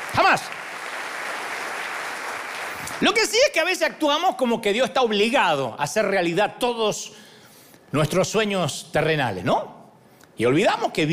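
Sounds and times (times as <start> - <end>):
crowd applause: 0.0 - 3.2
speech: 0.3 - 0.6, 3.0 - 7.2, 7.9 - 9.8, 10.4 - 11.1.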